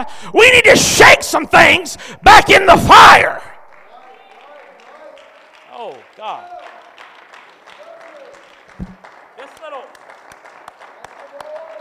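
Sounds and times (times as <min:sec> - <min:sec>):
speech: 0:00.0 - 0:03.5, 0:05.8 - 0:06.6
sparse audience applause: 0:03.4 - 0:11.7.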